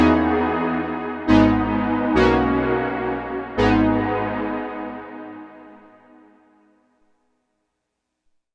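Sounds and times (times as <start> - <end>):
Roland Juno 6 synthesizer bloom pad: 0.0 - 6.8.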